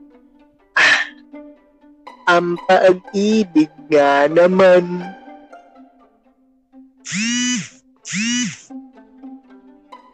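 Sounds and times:
cellphone vibrating against a surface with an alarm: 0.8 - 1.1, 7.1 - 8.7
speech: 2.3 - 5.2, 7.1 - 7.3, 8.1 - 8.8.

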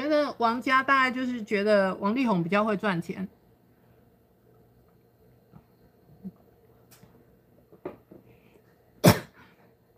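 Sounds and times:
speech: 0.2 - 3.4
cough: 9.0 - 9.4.

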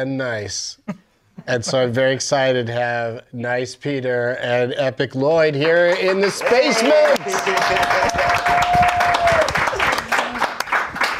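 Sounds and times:
speech: 0.0 - 8.8
live studio audience applause: 5.6 - 11.1.

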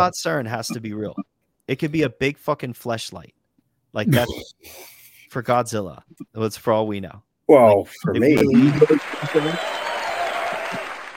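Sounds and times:
speech: 0.0 - 9.8
applause sound effect: 8.4 - 11.1.

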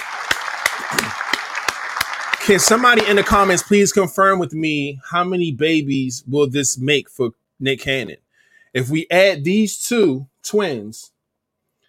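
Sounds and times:
louder evenly spaced claps: 0.0 - 3.9
many hands clapping applause: 0.0 - 4.0
speech: 0.9 - 1.4, 2.4 - 11.1.

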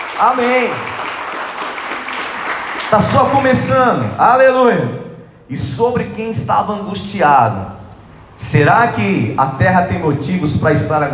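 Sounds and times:
crowd applauding: 0.0 - 4.0
speech: 0.2 - 1.1, 2.9 - 7.8, 8.4 - 11.1.

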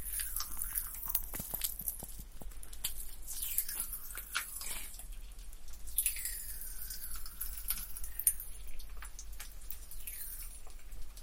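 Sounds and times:
popping candy crackling and fizzing: 0.0 - 11.2.

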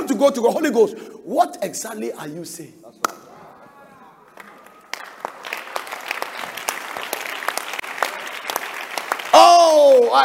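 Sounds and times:
speech: 0.1 - 3.1
audience clapping: 4.2 - 10.2.

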